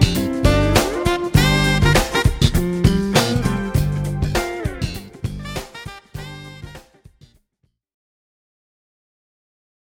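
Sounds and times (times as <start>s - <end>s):
Rio funk music: 0.0s - 7.4s.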